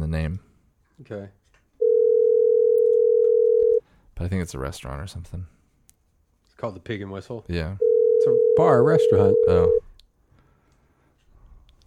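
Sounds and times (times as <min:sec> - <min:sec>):
speech: 0:00.1 - 0:01.4, 0:04.2 - 0:05.6, 0:06.6 - 0:09.8
telephone dial tone while placing a call: 0:01.8 - 0:03.8, 0:07.8 - 0:09.8.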